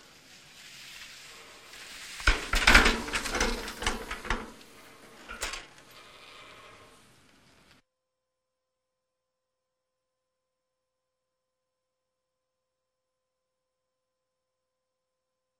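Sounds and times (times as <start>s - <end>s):
ski lift: 0.0s - 7.8s.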